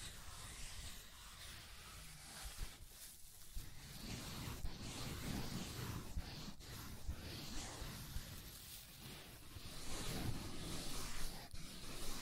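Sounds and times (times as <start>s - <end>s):
scratching and tracing rasp: 0.0s - 12.2s.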